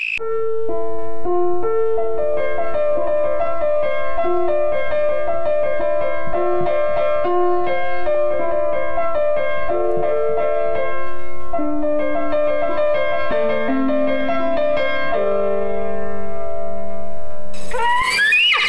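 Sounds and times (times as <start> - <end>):
piano: 0.2 - 18.0
eagle cry: 17.6 - 18.6.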